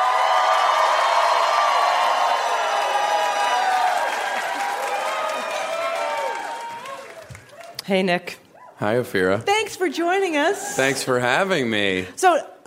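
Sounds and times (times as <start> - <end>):
audience applauding and cheering to welcome Nick Kroll: 0.0 - 7.9
speech: 7.9 - 12.5.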